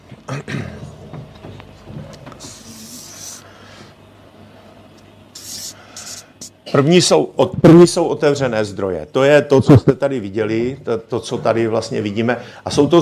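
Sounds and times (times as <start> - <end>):
red marker drawing on a board: 2.4 - 3.4, 5.4 - 6.5
speech: 6.7 - 13.0.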